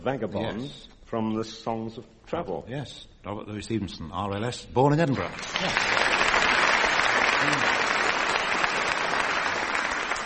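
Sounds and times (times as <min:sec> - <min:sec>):
speech: 0:00.0 - 0:06.2, 0:07.4 - 0:07.8
audience clapping: 0:05.2 - 0:10.2.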